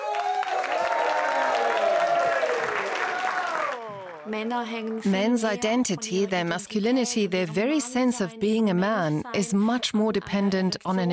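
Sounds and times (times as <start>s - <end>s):
audience applause: 0.0s - 5.1s
speech: 4.3s - 11.1s.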